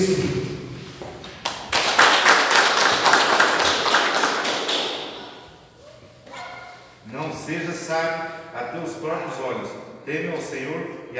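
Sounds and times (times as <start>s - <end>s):
speech: 0.0s - 0.4s, 7.5s - 11.1s
round of applause from a group: 1.4s - 5.6s.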